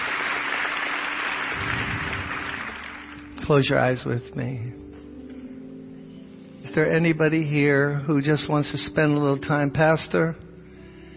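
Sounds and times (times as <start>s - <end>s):
loud audience clapping: 0.0s - 3.4s
speech: 3.5s - 4.8s, 6.8s - 10.4s.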